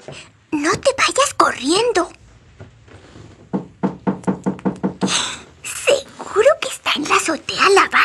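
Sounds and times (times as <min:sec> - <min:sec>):
rustling noise: 0:00.0 - 0:07.4
knocking on a door: 0:03.4 - 0:05.2.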